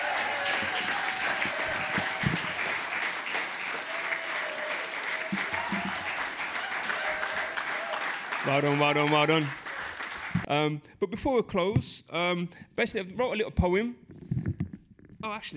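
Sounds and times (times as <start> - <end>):
audience applause: 0.0 - 10.5
speech: 8.5 - 9.6, 10.5 - 14.0, 15.2 - 15.5.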